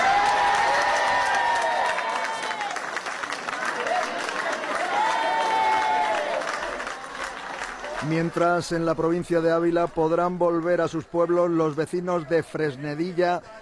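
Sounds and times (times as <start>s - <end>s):
raised voices cheering and calling out: 0.0s - 9.2s
residents applauding loudly: 0.0s - 10.6s
speech: 8.0s - 13.5s.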